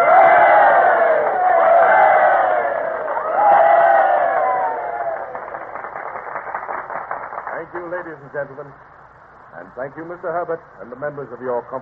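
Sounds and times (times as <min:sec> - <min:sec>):
crowd giving three cheers: 0:00.0 - 0:08.0
speech: 0:08.2 - 0:09.0, 0:09.6 - 0:11.7.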